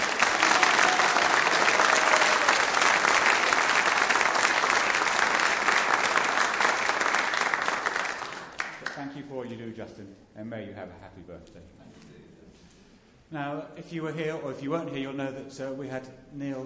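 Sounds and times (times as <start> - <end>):
round of applause: 0.0 - 9.2
speech: 10.0 - 12.2, 13.3 - 16.6.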